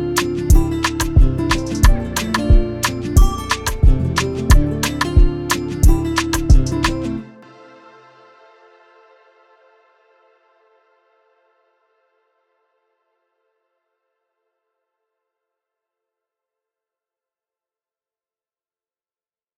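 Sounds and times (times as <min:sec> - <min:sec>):
afro music in D minor at 90 BPM: 0:00.0 - 0:07.4.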